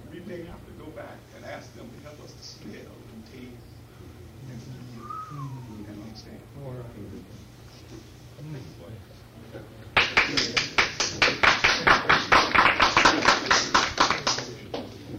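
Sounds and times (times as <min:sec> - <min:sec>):
speech: 0:00.3 - 0:03.8, 0:04.4 - 0:10.7
audience applauding: 0:10.0 - 0:14.9.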